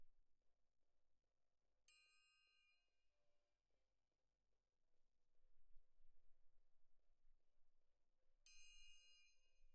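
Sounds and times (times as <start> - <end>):
main percussion: 1.9 - 2.7, 8.5 - 9.6.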